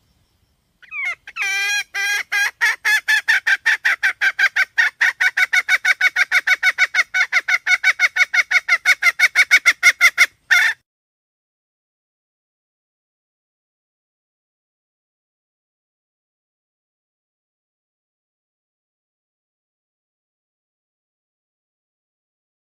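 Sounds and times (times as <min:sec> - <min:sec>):
red junglefowl hen clucking: 0:00.8 - 0:10.8.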